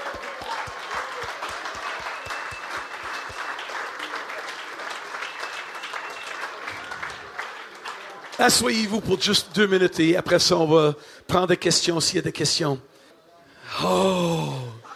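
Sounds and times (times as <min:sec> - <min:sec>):
rhythmic claps in unison: 0:00.0 - 0:08.6
audience applause: 0:00.0 - 0:09.3
speech: 0:08.4 - 0:12.9, 0:13.8 - 0:14.7.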